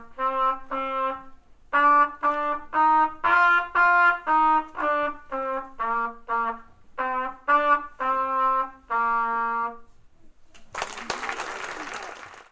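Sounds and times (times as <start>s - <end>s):
trumpet playing a peace song: 0.0s - 10.0s.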